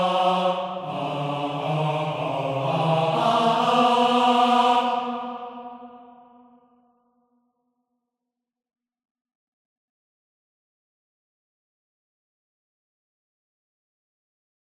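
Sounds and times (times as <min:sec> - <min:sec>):
baritone voice: 0:00.0 - 0:05.2.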